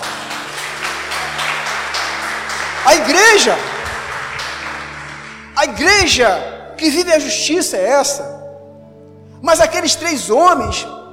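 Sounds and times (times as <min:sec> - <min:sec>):
audience applauding: 0:00.0 - 0:06.0
speech: 0:02.9 - 0:03.7, 0:05.6 - 0:08.4, 0:09.4 - 0:11.0.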